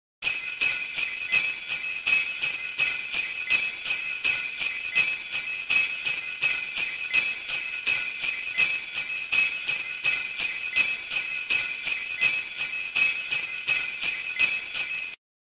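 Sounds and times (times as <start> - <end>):
sleigh bells jingling: 0.2 - 15.2.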